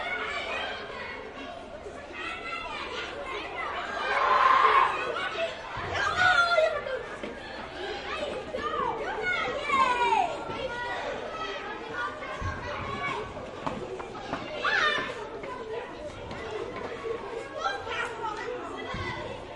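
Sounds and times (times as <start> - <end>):
schoolyard ambience: 0.0 - 19.5.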